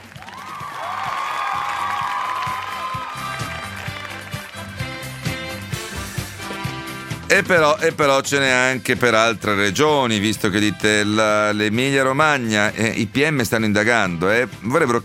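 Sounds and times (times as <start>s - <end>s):
cheering: 0.0s - 4.6s
audience applause: 0.0s - 5.3s
rhythmic musical beat with low bass pulses: 0.0s - 10.2s
speech: 7.3s - 15.0s.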